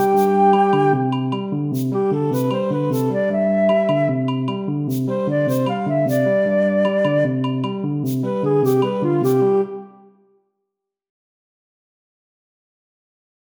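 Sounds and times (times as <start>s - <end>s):
melody: 0.0s - 7.0s, 7.6s - 10.1s.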